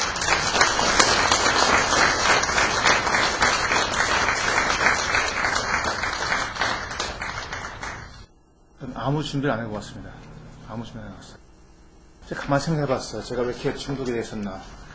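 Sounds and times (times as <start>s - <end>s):
audience applause welcoming a speaker: 0.0s - 8.3s
speech: 9.0s - 11.4s, 12.3s - 14.8s.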